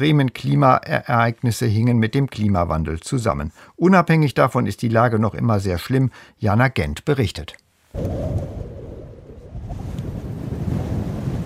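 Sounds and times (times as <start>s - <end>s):
speech: 0.0s - 8.5s
wind blowing sand off dunes: 7.9s - 11.4s.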